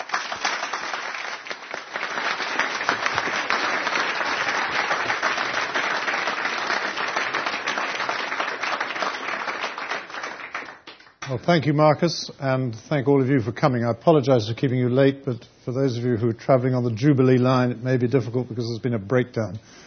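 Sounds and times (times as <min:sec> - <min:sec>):
audience applause: 0:00.0 - 0:11.4
speech: 0:11.3 - 0:19.8.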